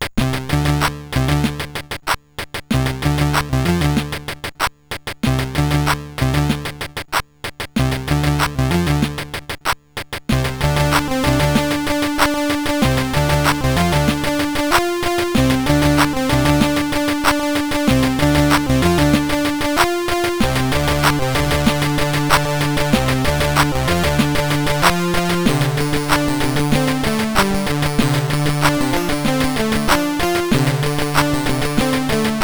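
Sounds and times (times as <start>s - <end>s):
MOS6581R2 SID chip digi sound: 0.2s - 32.4s.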